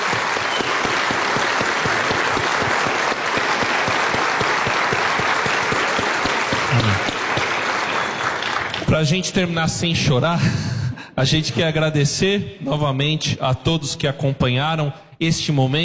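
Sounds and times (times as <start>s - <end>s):
audience applause: 0.0s - 8.9s
speech: 9.0s - 15.8s.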